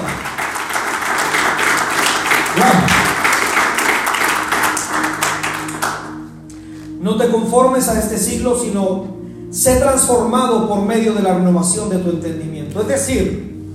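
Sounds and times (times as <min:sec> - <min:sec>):
audience applauding: 0:00.0 - 0:06.3
speech: 0:07.5 - 0:13.5.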